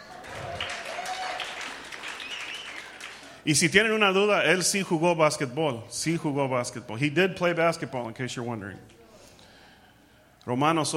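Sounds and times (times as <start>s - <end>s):
audience applause: 0.0s - 3.4s
speech: 3.4s - 9.0s, 10.4s - 10.9s.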